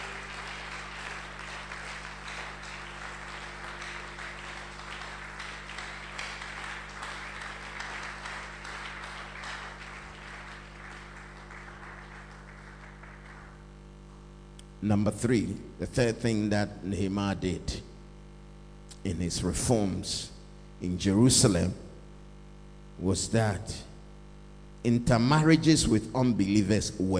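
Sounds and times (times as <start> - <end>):
audience applause: 0.0 - 13.7
speech: 14.8 - 17.9, 19.0 - 21.8, 23.0 - 23.9, 24.8 - 27.1.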